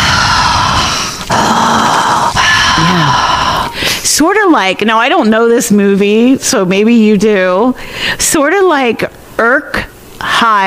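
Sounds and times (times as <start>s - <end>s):
person imitating deep heavy breathing: 0.0s - 4.0s
speech: 4.2s - 10.6s.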